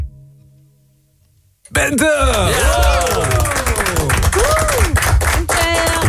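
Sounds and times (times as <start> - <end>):
speech: 1.7 - 3.3
crowd applauding: 2.0 - 6.0
voices cheering and whooping: 2.3 - 5.0.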